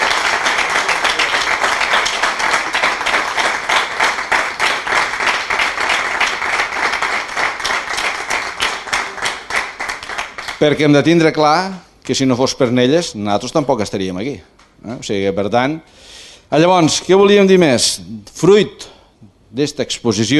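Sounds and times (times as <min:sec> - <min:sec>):
audience applause: 0:00.0 - 0:10.7
speech: 0:10.6 - 0:20.3.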